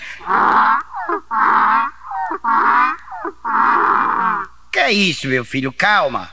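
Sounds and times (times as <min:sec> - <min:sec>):
donkey braying: 0:00.0 - 0:05.0
speech: 0:04.9 - 0:06.3.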